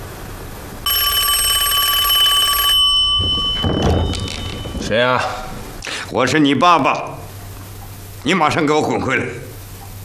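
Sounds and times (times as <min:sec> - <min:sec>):
telephone ringing: 0:00.8 - 0:05.7
speech: 0:04.9 - 0:05.4, 0:06.1 - 0:07.1, 0:08.2 - 0:09.5.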